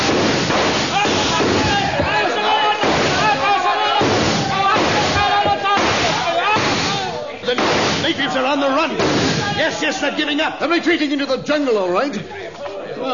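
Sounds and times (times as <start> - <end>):
volley of rifle fire in a radio-drama battle scene: 0.0 - 9.8
shouting voices: 0.0 - 11.4
speech: 9.8 - 12.4.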